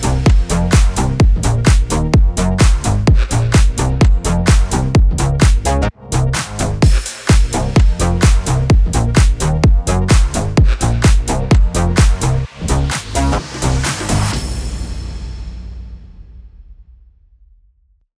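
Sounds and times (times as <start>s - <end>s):
future house track in A sharp minor at 128 BPM: 0.0s - 14.4s.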